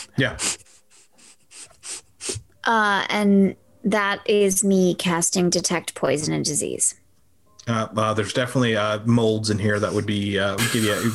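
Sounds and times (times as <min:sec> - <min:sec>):
sniffing: 0:00.0 - 0:02.5
speech: 0:00.2 - 0:00.5, 0:02.6 - 0:07.0, 0:07.7 - 0:11.1.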